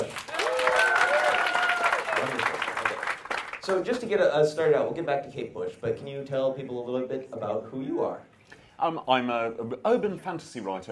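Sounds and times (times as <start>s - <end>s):
crowd applauding: 0.0s - 3.9s
speech: 3.7s - 10.9s.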